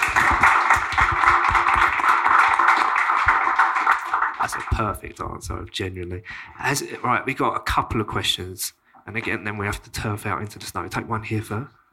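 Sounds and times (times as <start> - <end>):
audience applause: 0.0 - 5.0
speech: 4.8 - 11.8.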